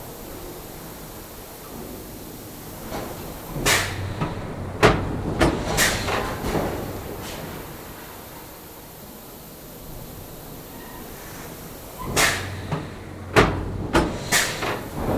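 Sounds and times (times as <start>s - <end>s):
pneumatic hiss: 1.6s - 4.2s, 5.5s - 8.2s, 10.1s - 13.2s, 14.0s - 15.1s
pneumatic factory press stamping: 2.9s - 6.9s, 12.0s - 15.1s.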